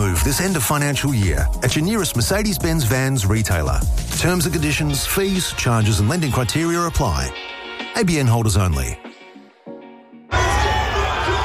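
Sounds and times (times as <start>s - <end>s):
speech: 0.2s - 9.0s
crowd roaring at a Broncos home game: 10.3s - 11.4s.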